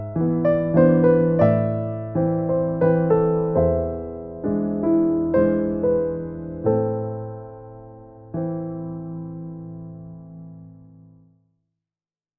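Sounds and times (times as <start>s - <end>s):
waltz music: 0.0s - 9.9s.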